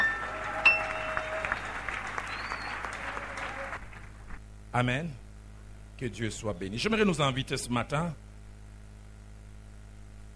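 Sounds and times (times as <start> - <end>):
congregation applauding in church: 0.0 - 4.2
speech: 4.7 - 5.2, 6.0 - 8.2.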